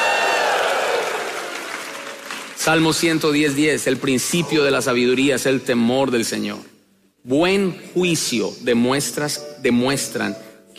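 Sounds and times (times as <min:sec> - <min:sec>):
audience shouting and cheering: 0:00.0 - 0:02.1
speech: 0:02.6 - 0:10.7.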